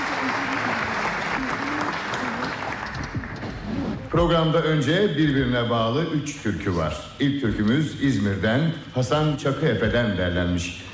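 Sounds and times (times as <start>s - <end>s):
audience applauding a choir of radio vocalists and instrumentalists: 0.0s - 4.2s
speech: 4.1s - 10.9s.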